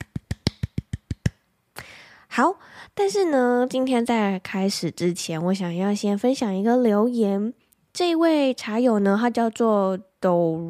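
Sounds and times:
hand clapping: 0.0 - 1.4
speech: 2.4 - 10.6.

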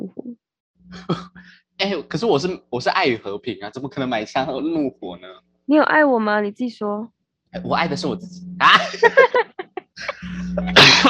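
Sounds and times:
speech: 0.9 - 10.9
person coughing: 1.0 - 1.4, 8.7 - 9.3, 10.0 - 11.0
laughter: 1.0 - 5.3, 7.6 - 11.0.

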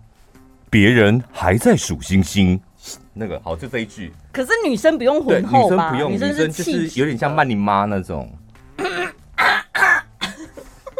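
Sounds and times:
speech: 0.7 - 9.0
person clearing throat: 8.8 - 10.6.

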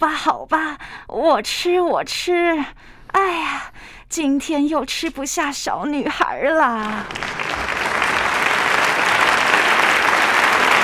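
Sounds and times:
speech: 0.0 - 7.4
applause: 6.8 - 10.8.

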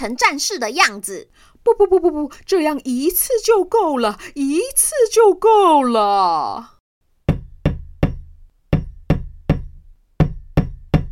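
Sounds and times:
speech: 0.0 - 6.7
knocking on a floor: 7.3 - 11.0.

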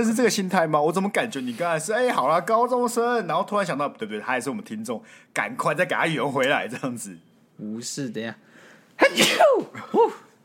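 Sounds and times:
speech: 0.0 - 10.2
sneeze: 9.0 - 10.2.

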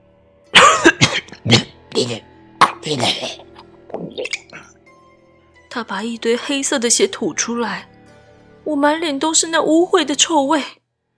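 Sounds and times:
man coughing: 0.6 - 1.8, 2.6 - 3.7
speech: 1.4 - 3.5, 5.8 - 7.9, 8.7 - 10.8.

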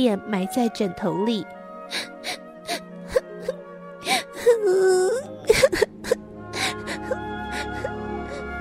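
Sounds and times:
speech: 0.0 - 2.4
girl crying into pillow: 1.9 - 3.5, 4.1 - 8.5.

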